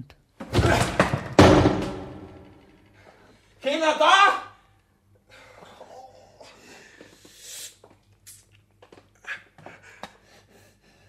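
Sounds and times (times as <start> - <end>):
body slamming against door: 0.4 - 2.4.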